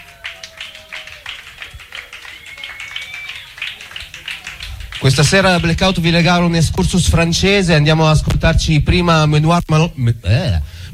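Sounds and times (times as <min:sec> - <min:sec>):
audience applause: 0:00.0 - 0:06.4
speech: 0:05.0 - 0:10.7.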